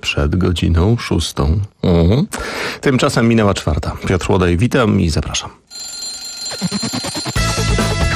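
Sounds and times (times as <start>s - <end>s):
speech: 0.0s - 6.0s
rattling alarm clock bell ringing: 5.7s - 7.8s
loud bright musical radio jingle: 5.7s - 8.0s.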